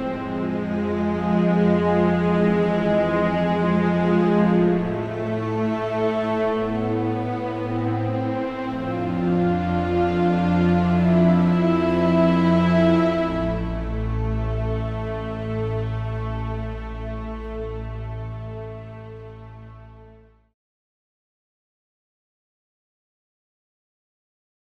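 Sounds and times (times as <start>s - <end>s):
slow 55 BPM cinematic trailer music: 0.0s - 20.4s.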